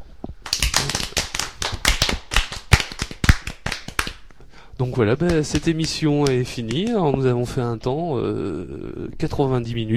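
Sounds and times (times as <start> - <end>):
applause: 0.5 - 4.2
speech: 4.8 - 9.9.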